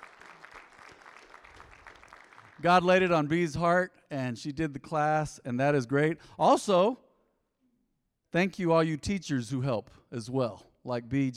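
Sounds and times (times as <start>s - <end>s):
audience applause: 0.0s - 2.7s
speech: 2.6s - 7.0s, 8.3s - 11.3s.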